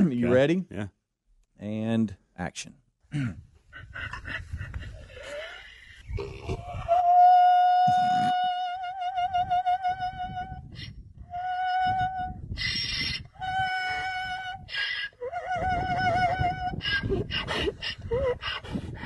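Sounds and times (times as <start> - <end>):
speech: 0.2 - 1.0, 1.6 - 4.8, 6.2 - 6.8
donkey braying: 3.8 - 10.1, 12.6 - 18.8.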